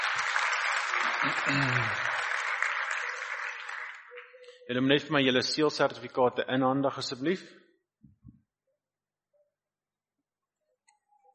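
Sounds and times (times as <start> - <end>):
audience applause: 0.0 - 4.4
speech: 1.0 - 2.1, 4.7 - 7.7.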